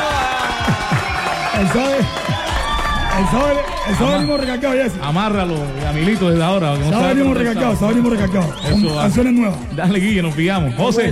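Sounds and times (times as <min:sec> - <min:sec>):
applause sound effect: 0:00.0 - 0:10.4
speech: 0:01.6 - 0:02.4, 0:03.2 - 0:11.0.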